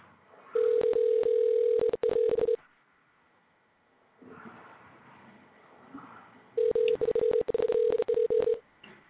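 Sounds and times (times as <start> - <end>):
telephone line ringing tone: 0.6 - 2.6, 6.6 - 8.6.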